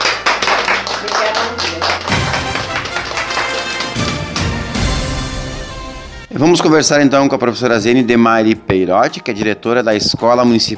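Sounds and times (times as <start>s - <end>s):
audience applause: 0.0s - 5.0s
speech: 6.4s - 10.7s.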